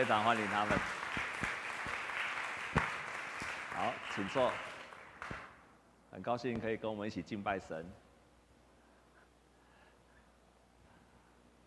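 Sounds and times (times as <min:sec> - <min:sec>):
speech: 0:00.0 - 0:01.0, 0:03.8 - 0:04.7, 0:06.1 - 0:08.0
crowd applause: 0:00.0 - 0:05.5.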